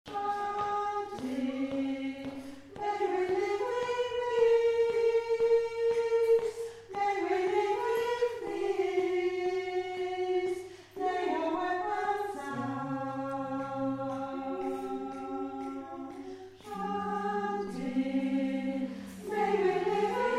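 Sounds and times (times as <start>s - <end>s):
soprano singing: 0.1s - 20.3s.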